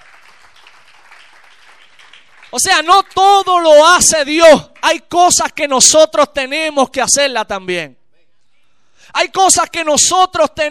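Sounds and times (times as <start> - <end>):
audience applause: 0.0 - 2.6
speech: 2.5 - 8.0, 9.1 - 10.6.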